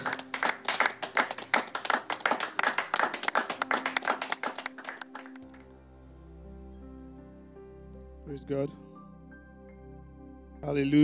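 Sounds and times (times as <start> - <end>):
crowd clapping rhythmically as offering: 0.0 - 5.6
speech: 8.4 - 8.9, 10.6 - 11.0.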